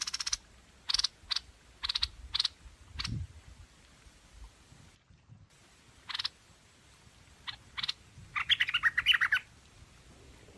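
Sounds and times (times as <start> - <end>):
bird chattering song: 0.0 - 3.2, 6.1 - 6.3, 7.4 - 9.5
background hiss: 0.0 - 10.5.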